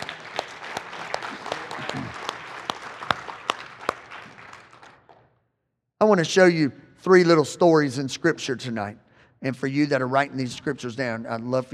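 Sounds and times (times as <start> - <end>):
crowd clapping: 0.0 - 5.3
speech: 6.0 - 11.7.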